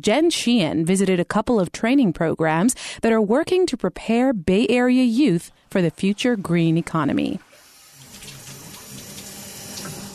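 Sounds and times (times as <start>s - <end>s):
speech: 0.0s - 7.5s
water running from a low-flow sink tap during a flow-rate test: 7.3s - 10.1s.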